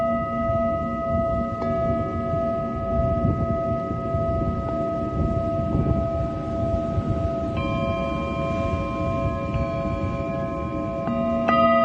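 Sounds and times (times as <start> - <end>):
singing bowls ringing in a sound healing session: 0.0 - 11.8.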